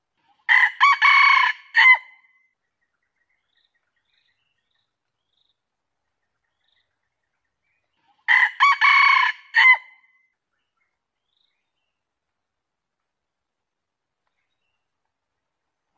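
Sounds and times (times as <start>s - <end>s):
junglefowl crowing: 0.5s - 2.2s, 8.3s - 10.1s.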